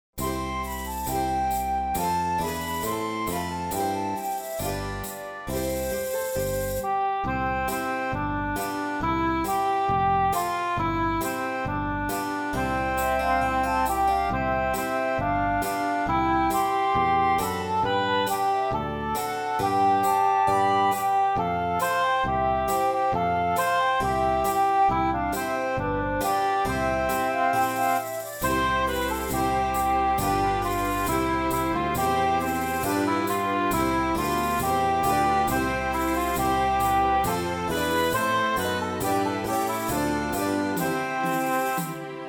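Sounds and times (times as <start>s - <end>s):
instrumental song: 0.2s - 42.2s.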